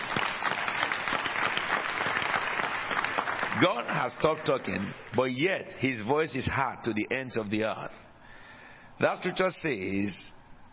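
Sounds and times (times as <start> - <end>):
audience clapping: 0.0 - 5.4
speech: 3.6 - 8.0, 9.0 - 10.4.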